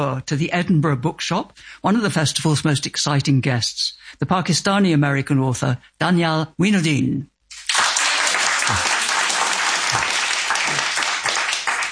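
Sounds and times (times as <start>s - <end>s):
speech: 0.0s - 7.3s, 8.7s - 9.0s
audience clapping in the Edinburgh Bookshop: 7.5s - 11.9s.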